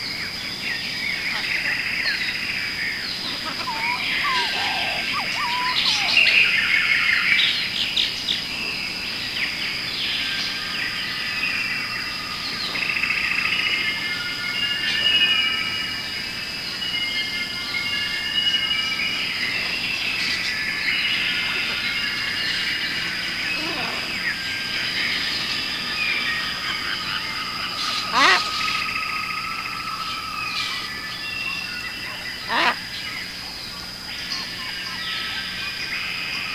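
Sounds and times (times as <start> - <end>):
jungle forest ambience: 0.0 - 36.5.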